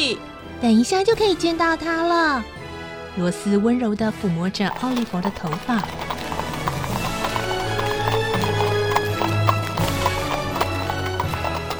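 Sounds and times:
speech: 0:00.0 - 0:02.6, 0:03.2 - 0:06.1
horse hooves of a racing horse-drawn carriage: 0:04.7 - 0:11.7.

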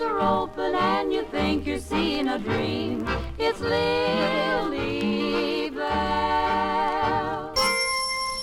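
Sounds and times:
speech: 0:00.2 - 0:07.2
bell ringing: 0:07.5 - 0:08.3.

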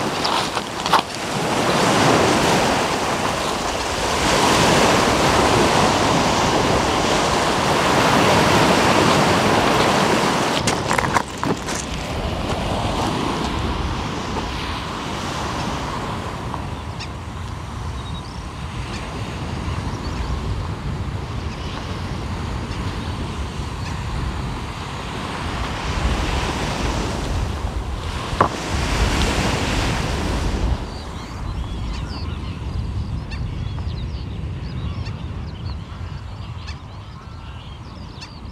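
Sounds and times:
waves washing along the Omø coastline: 0:00.0 - 0:19.8, 0:22.2 - 0:31.5
wind gusts: 0:00.0 - 0:38.4.

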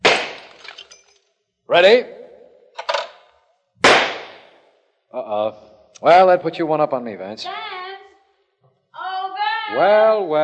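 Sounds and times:
shotgun firing at skeet targets: 0:00.0 - 0:00.6, 0:03.8 - 0:04.6
speech: 0:01.7 - 0:02.2, 0:05.3 - 0:07.8, 0:09.7 - 0:10.4.

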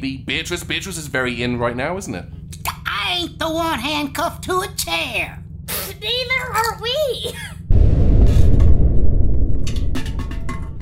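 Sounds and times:
speech: 0:00.0 - 0:02.4, 0:03.1 - 0:05.4, 0:06.0 - 0:07.5
explosion: 0:07.7 - 0:10.8.

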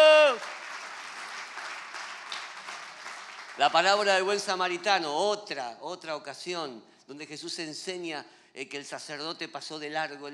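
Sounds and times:
audience clapping: 0:00.0 - 0:05.2
speech: 0:03.6 - 0:10.3.

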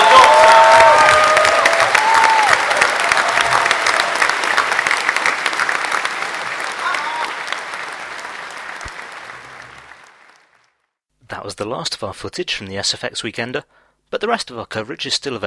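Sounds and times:
convention audience whooping: 0:00.0 - 0:10.1
convention audience applause at the SFX Weekender sci-fi event: 0:00.0 - 0:10.8
speech: 0:11.6 - 0:15.4.

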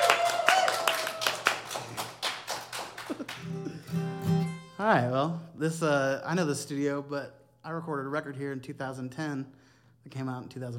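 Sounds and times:
audience applause: 0:00.0 - 0:03.8
speech: 0:04.8 - 0:10.7.

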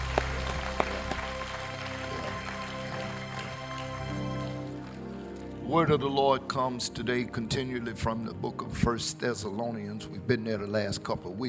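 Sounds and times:
audience clapping hands in praise: 0:00.0 - 0:05.6
speech: 0:05.7 - 0:11.4.

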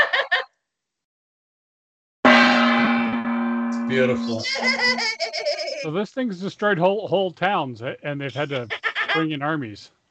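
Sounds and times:
gong struck and ringing: 0:02.3 - 0:04.4
speech: 0:03.9 - 0:10.0
laughter: 0:04.1 - 0:06.1, 0:08.1 - 0:09.5.

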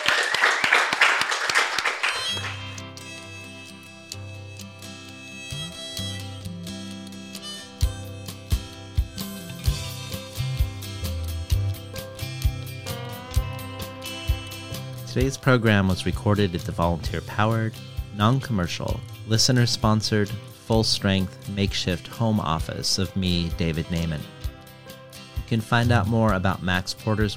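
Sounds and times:
audience applause: 0:00.0 - 0:02.6
instrumental music with deep bass line and plucked notes: 0:02.2 - 0:27.3
speech: 0:15.2 - 0:24.4, 0:25.5 - 0:27.3.

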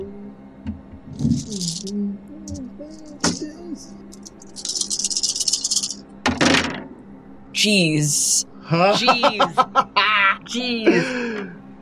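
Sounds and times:
many dice being rolled: 0:01.2 - 0:01.9, 0:04.2 - 0:06.0
speech: 0:01.2 - 0:04.3, 0:07.6 - 0:09.9, 0:10.5 - 0:11.5
laughter: 0:08.7 - 0:11.6.

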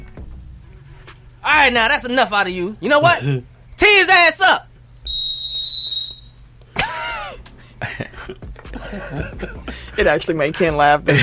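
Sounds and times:
speech: 0:01.4 - 0:05.3, 0:08.3 - 0:11.2
whistle sound effect drop: 0:05.1 - 0:06.4
laughter: 0:06.8 - 0:10.0.

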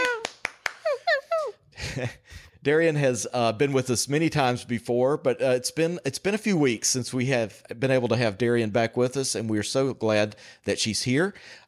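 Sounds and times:
hand claps greeting a podcast guest: 0:00.0 - 0:01.1
speech: 0:02.0 - 0:11.6.

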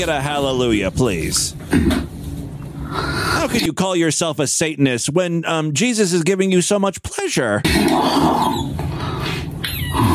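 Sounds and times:
speech: 0:00.0 - 0:02.1, 0:02.9 - 0:08.8
small squeaky fart: 0:07.7 - 0:10.1.

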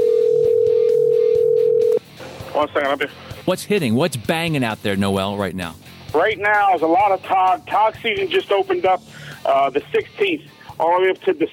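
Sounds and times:
phone call ringing tone: 0:00.0 - 0:02.0
speech: 0:02.6 - 0:11.5.

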